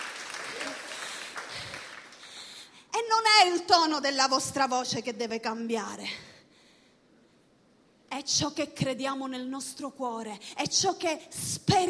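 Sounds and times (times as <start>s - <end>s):
church congregation applauding: 0.0s - 2.6s
speech: 3.4s - 6.3s, 8.2s - 11.8s.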